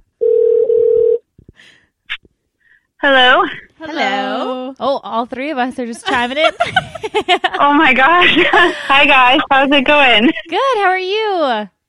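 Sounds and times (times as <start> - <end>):
telephone dial tone: 0.2 - 1.2
speech: 3.0 - 11.8
laughter: 6.1 - 9.5.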